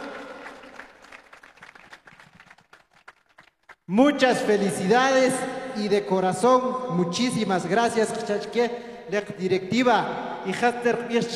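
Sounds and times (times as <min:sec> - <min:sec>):
crowd applause: 0:00.0 - 0:03.8
speech: 0:03.9 - 0:11.3.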